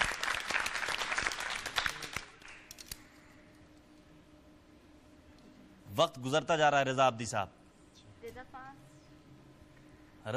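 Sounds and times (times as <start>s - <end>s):
applause at an archery competition: 0.0s - 2.8s
speech: 6.0s - 7.6s.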